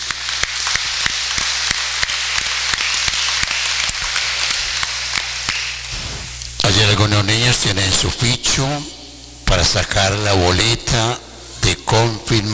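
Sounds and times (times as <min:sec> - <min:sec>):
crowd audience applauding: 0:00.0 - 0:05.9
speech: 0:06.9 - 0:11.3, 0:11.9 - 0:12.5.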